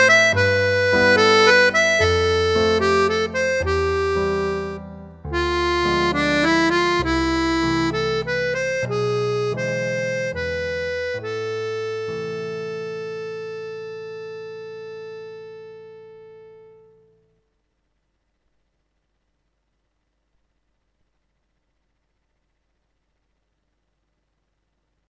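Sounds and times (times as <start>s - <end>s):
instrumental music: 0.0s - 17.4s.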